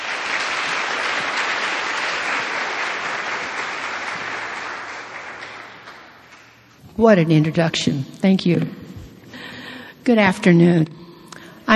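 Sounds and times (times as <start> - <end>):
audience applause at a church gathering: 0.0 - 6.6
speech: 7.0 - 8.8, 10.1 - 11.0.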